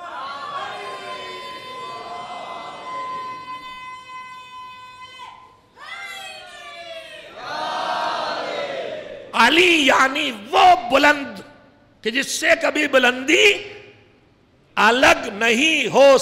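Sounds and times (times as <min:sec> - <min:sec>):
crowd shouting a religious slogan: 0:00.0 - 0:03.6, 0:07.3 - 0:09.4
speech: 0:09.4 - 0:13.8, 0:14.8 - 0:16.2.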